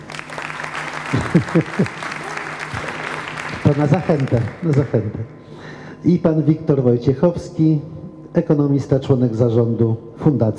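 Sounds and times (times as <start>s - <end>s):
applause: 0.0s - 5.2s
laughter: 1.0s - 5.2s
speech: 1.1s - 2.1s, 3.6s - 5.4s, 6.0s - 10.5s.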